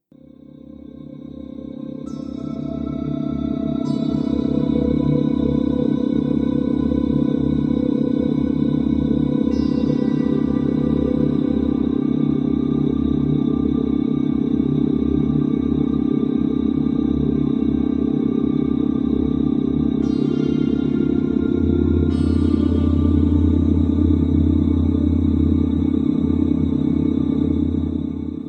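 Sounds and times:
gamma brainwave audio tone: 0.7s - 28.4s.

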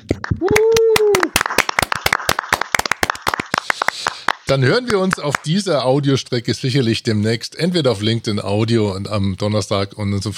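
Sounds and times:
audience applause: 0.3s - 5.5s
speech: 4.5s - 10.3s.

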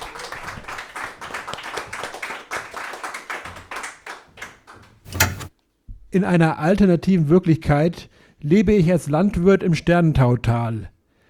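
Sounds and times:
audience applause: 0.0s - 5.0s
speech: 6.1s - 10.9s.

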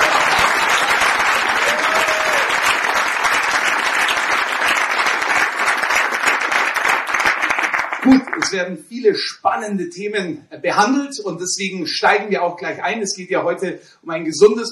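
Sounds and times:
audience applause: 0.0s - 8.6s
speech: 8.1s - 14.7s.

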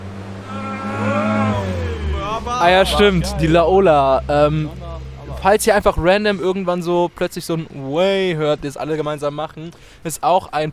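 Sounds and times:
loud car exhaust revving past: 0.0s - 6.5s
laughter: 0.5s - 9.8s
speech: 2.6s - 4.8s, 5.4s - 10.7s.

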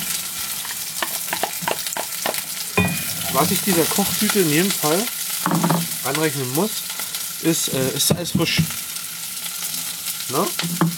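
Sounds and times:
onions sizzling in hot oil: 0.0s - 10.9s
speech: 3.4s - 8.9s, 10.3s - 10.9s.

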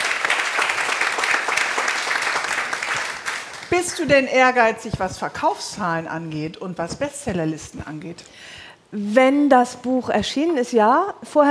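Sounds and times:
steady applause from a group: 0.0s - 4.2s
speech: 3.8s - 11.5s.

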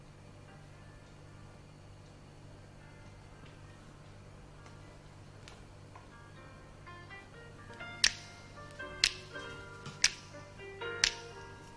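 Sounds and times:
soft sustained music: 0.0s - 11.7s
crisp finger snaps in a song: 7.7s - 11.5s.

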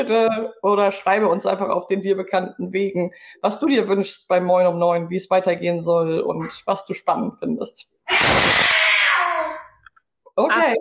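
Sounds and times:
speech: 0.0s - 8.6s, 10.4s - 10.8s
cats fighting: 8.1s - 9.8s.

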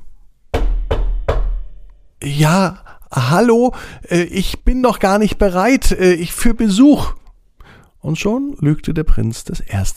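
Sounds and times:
knocking on a door: 0.5s - 1.8s
speech: 2.2s - 7.2s, 8.0s - 9.9s.

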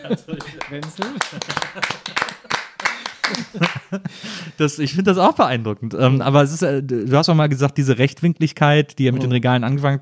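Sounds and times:
speech: 0.0s - 2.4s, 3.3s - 9.9s
laughter: 0.0s - 4.6s
inserted applause sound effect: 0.4s - 3.9s.

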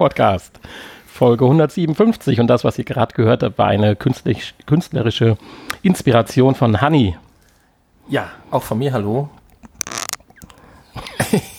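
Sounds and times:
speech: 0.0s - 7.2s, 8.1s - 9.4s, 11.3s - 11.5s
headset squeaking: 9.4s - 10.7s.

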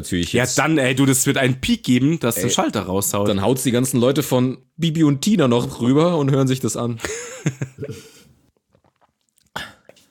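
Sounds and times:
speech: 0.0s - 8.2s
person drinking from a glass: 8.5s - 10.0s.

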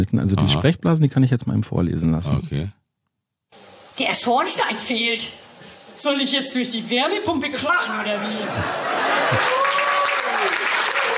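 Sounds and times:
speech: 0.0s - 2.8s, 4.0s - 5.4s, 6.0s - 9.6s
laughter: 7.8s - 11.1s
audience applause: 8.5s - 11.1s.

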